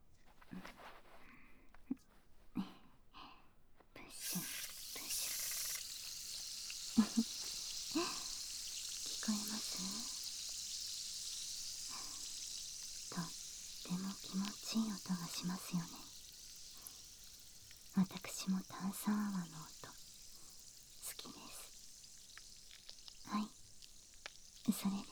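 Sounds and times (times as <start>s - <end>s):
carbonated foam fizzing during ear cleaning: 4.1s - 25.1s.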